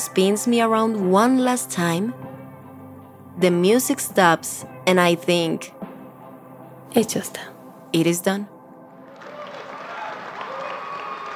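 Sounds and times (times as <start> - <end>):
speech: 0.2 - 2.3, 3.4 - 5.9, 6.9 - 8.5
audience applause: 9.1 - 11.3.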